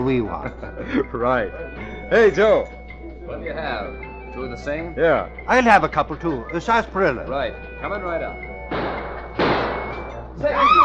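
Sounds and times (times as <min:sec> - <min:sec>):
laughter: 0:00.0 - 0:02.1
speech: 0:00.0 - 0:08.8, 0:10.4 - 0:10.8
gunshot: 0:08.7 - 0:10.0.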